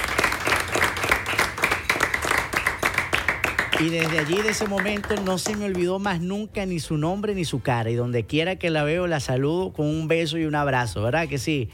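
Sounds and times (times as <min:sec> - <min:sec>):
audience applause: 0:00.0 - 0:05.9
speech: 0:03.8 - 0:11.7.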